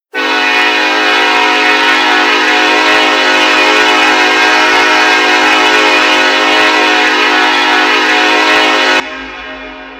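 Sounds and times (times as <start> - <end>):
horn: 0.0 - 9.9.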